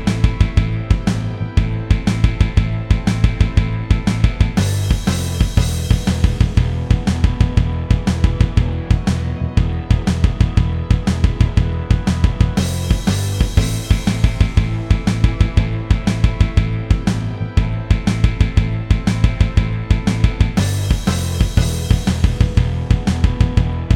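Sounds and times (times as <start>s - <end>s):
jam backing track: 0.0s - 23.9s.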